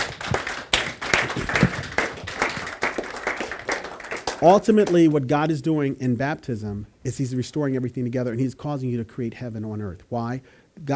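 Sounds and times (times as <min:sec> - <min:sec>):
audience applause: 0:00.0 - 0:04.5
speech: 0:04.4 - 0:10.9.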